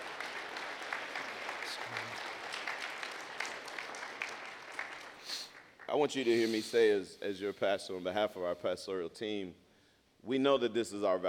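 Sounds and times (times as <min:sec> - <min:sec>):
audience applauding: 0:00.0 - 0:06.3
speech: 0:05.9 - 0:09.6, 0:10.2 - 0:11.2.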